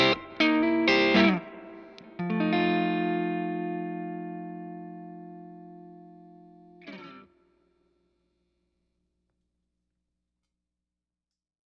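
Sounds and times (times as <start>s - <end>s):
G&L ASAT Classic Bluesboy Semihollow: 0.0s - 7.5s.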